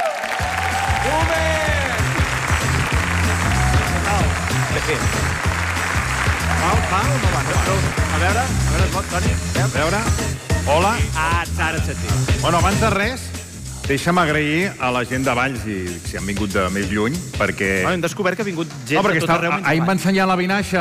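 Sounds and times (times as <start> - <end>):
audience applause: 0.0 - 9.5
speech: 7.0 - 13.3, 13.9 - 20.7.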